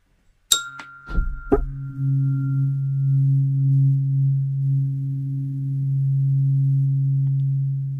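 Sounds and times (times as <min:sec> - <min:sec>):
Om tone at 136.1 hertz for meditation: 0:00.2 - 0:07.9
bright metallic clinks: 0:00.5 - 0:02.7.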